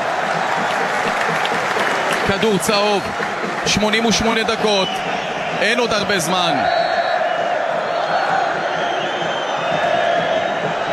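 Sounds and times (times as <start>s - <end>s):
football stadium crowd cheering: 0.0s - 10.9s
speech: 2.3s - 6.8s.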